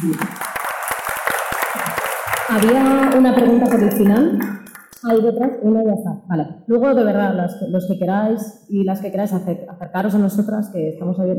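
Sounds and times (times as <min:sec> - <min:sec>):
speech: 0:00.0 - 0:00.4, 0:02.5 - 0:11.3
audience applause at an industry talk: 0:00.0 - 0:05.2.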